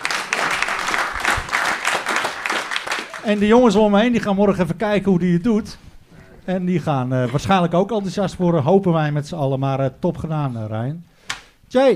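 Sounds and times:
crowd applauding: 0.0 - 3.8
speech: 3.2 - 5.8, 6.4 - 11.1, 11.7 - 11.9.

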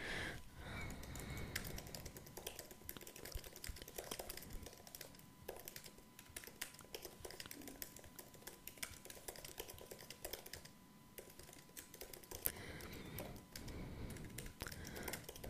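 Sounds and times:
typing a question to ChatGPT on a computer keyboard: 0.7 - 15.4.

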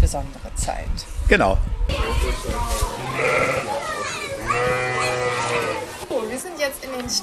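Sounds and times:
speech: 0.1 - 4.8, 6.6 - 7.2
lambs bleating in a stall: 3.0 - 3.8, 4.4 - 5.9.

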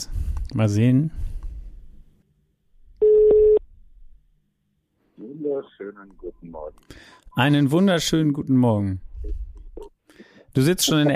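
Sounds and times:
speech: 0.0 - 1.2, 5.6 - 11.1
telephone dialing and ringing tone: 3.0 - 3.6.

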